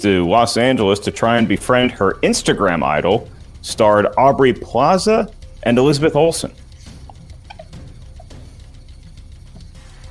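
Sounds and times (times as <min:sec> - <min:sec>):
speech: 0:00.0 - 0:06.6
steady low hum: 0:00.3 - 0:10.0
marker pens squeaking while writing: 0:06.7 - 0:08.6.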